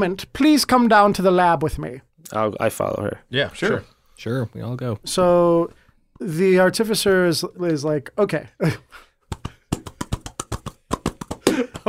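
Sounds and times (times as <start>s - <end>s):
speech: 0.0s - 9.1s
hands clapping: 9.2s - 11.8s.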